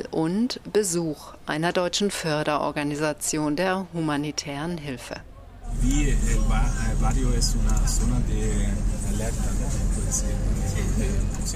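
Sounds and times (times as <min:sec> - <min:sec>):
speech: 0:00.2 - 0:11.5
car engine and road noise driving through a city neighbourhood: 0:05.3 - 0:11.5.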